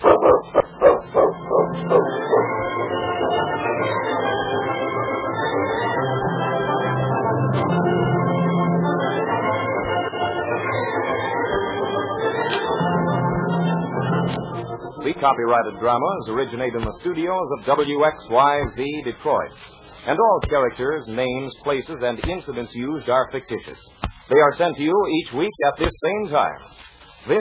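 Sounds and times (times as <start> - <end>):
dog barking: 0.0 - 2.5
music: 0.0 - 27.3
speech: 15.2 - 27.3.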